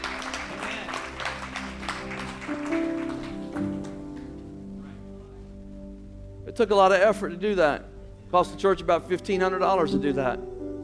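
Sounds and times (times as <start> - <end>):
audience applause: 0.0 - 4.4
speech: 6.6 - 10.6.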